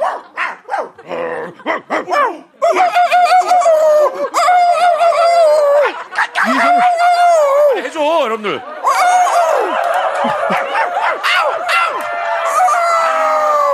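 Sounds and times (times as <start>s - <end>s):
neighborhood dogs barking wildly: 0.0s - 1.0s, 1.6s - 3.0s, 10.4s - 11.9s
laughter: 0.0s - 13.7s.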